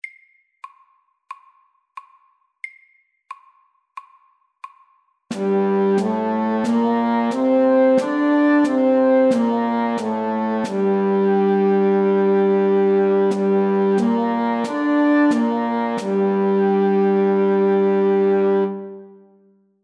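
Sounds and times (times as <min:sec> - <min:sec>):
music in G minor: 0:05.3 - 0:19.2.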